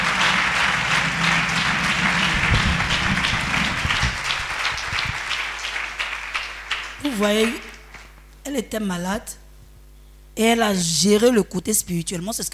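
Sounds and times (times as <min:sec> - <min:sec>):
church congregation applauding to acclaim God: 0:00.0 - 0:08.2
speech: 0:07.2 - 0:07.7, 0:08.5 - 0:09.4, 0:10.4 - 0:12.5.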